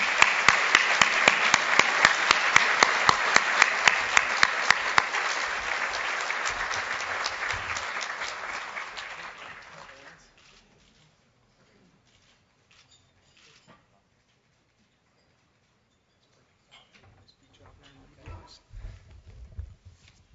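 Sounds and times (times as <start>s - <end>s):
audience applause welcoming Finance Minister Bill Morneau: 0.0s - 10.2s.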